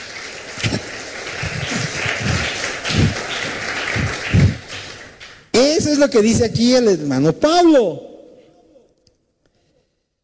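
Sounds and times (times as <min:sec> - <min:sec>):
crowd applauding: 0:00.0 - 0:05.9
speech: 0:05.6 - 0:08.1.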